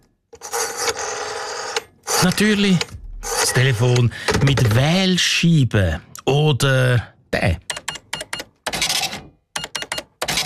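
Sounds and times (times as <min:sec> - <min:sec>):
speech: 0:02.2 - 0:03.0, 0:03.6 - 0:07.6
old mechanical cash register ringing: 0:08.8 - 0:10.4.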